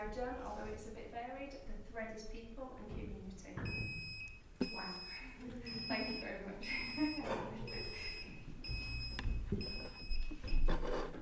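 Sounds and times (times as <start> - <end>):
speech: 0.0 - 8.1
electronic beep: 3.7 - 10.7.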